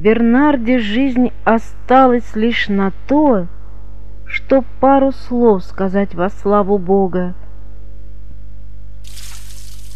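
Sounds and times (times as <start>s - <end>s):
speech: 0.0s - 3.6s, 4.3s - 7.4s
constant low hum: 0.0s - 9.9s
warm water poured from a travel flask over a man: 9.0s - 9.9s.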